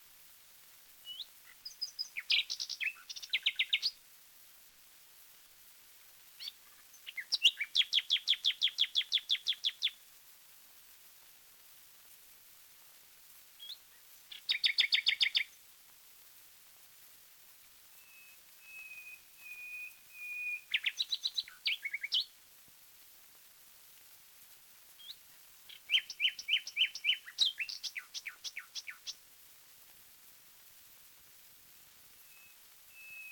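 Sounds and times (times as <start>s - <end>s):
wild nightingale singing: 1.0s - 4.0s, 6.4s - 10.0s, 13.6s - 15.6s, 18.0s - 22.4s, 25.0s - 29.2s, 32.2s - 33.3s.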